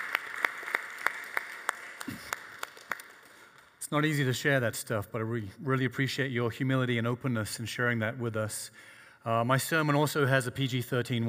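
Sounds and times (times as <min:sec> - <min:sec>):
audience applause: 0:00.0 - 0:03.8
speech: 0:03.9 - 0:11.2.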